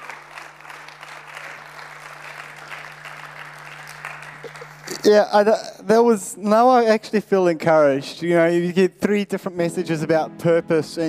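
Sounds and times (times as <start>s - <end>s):
audience clapping: 0.0s - 5.6s
speech: 5.0s - 11.0s.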